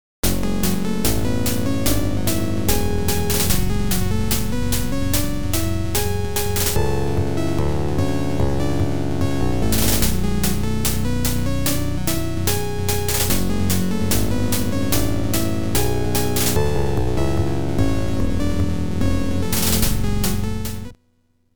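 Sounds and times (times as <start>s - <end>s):
OPL2 FM synth chip music: 0.2s - 21.0s.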